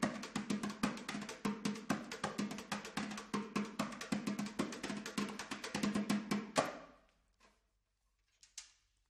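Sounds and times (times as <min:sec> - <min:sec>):
repique de mão hand drum playing: 0:00.0 - 0:06.7.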